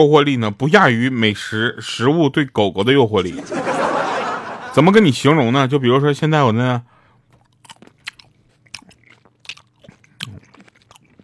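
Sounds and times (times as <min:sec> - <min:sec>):
speech: 0:00.0 - 0:04.0, 0:04.8 - 0:06.9
laughter: 0:03.3 - 0:04.9
person biting and chewing grapes: 0:07.1 - 0:11.2.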